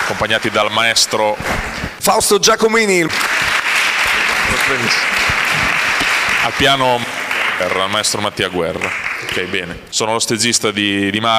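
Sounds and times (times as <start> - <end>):
audience applause at an event with spiritual parts and live music: 0.0 - 1.4, 3.0 - 9.9
speech: 0.1 - 3.5, 4.5 - 5.7, 6.4 - 11.3.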